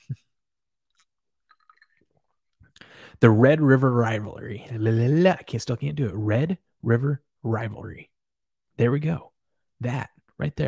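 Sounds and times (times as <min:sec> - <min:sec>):
person drinking a sip of whiskey: 0:00.9 - 0:03.0
speech: 0:03.2 - 0:08.1, 0:08.8 - 0:10.6.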